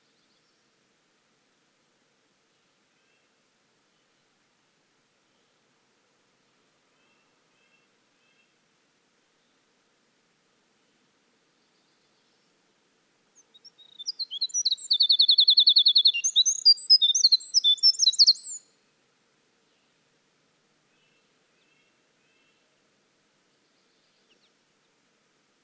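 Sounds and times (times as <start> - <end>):
Winter wren in full song: 13.4 - 18.6.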